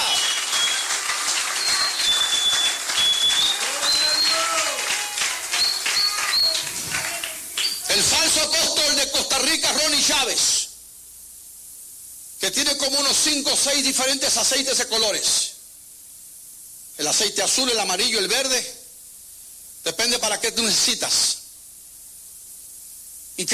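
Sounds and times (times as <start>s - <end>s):
high whistles: 0.0s - 8.0s
audience clapping and cheering: 0.0s - 8.1s
shouted voices: 0.0s - 8.2s
speech: 8.5s - 10.6s, 12.5s - 15.5s, 17.0s - 18.8s, 20.0s - 21.4s, 23.4s - 23.5s.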